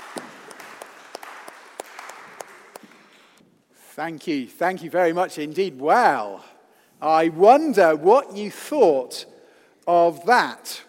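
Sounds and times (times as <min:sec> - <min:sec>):
audience applause: 0:00.0 - 0:03.4
speech: 0:04.0 - 0:10.8.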